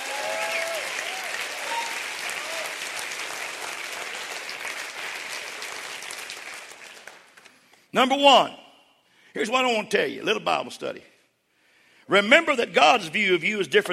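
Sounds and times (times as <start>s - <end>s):
crowd clapping: 0.0s - 7.8s
speech: 7.9s - 8.6s, 9.3s - 11.1s, 12.1s - 13.9s.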